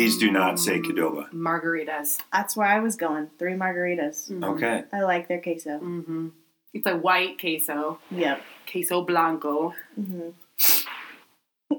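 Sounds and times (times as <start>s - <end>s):
speech: 0.0s - 10.9s
person sniffling: 10.6s - 11.2s.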